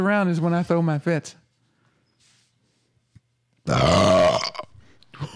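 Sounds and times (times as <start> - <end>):
speech: 0.0 - 1.4, 3.7 - 4.2
loud burp: 3.7 - 4.8.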